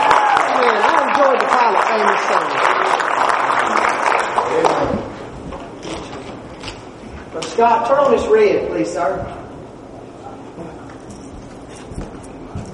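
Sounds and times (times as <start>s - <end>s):
crowd clapping: 0.0s - 5.2s
speech: 1.9s - 3.1s, 7.6s - 9.4s.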